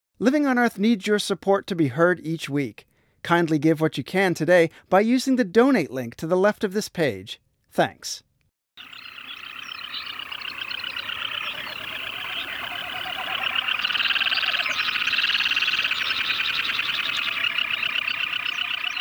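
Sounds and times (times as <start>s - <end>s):
speech: 0.2s - 9.1s
birds at Teshek Puk Lake during mating season: 8.8s - 18.9s.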